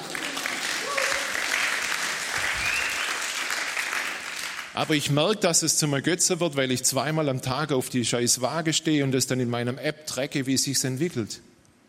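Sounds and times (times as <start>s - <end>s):
audience clapping: 0.0s - 5.0s
speech: 4.8s - 11.5s.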